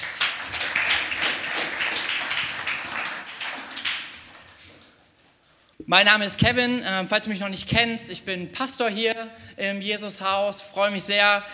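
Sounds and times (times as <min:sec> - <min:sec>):
audience applause for the band: 0:00.0 - 0:04.8
speech: 0:05.9 - 0:11.5.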